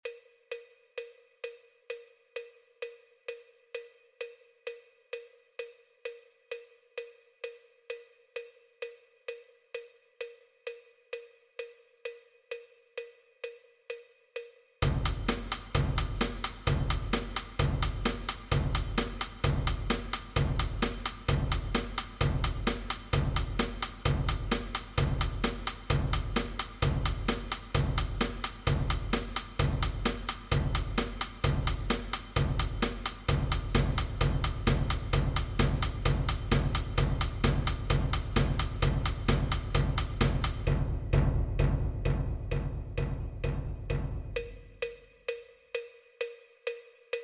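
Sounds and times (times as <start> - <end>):
percussion: 0.0 - 47.2.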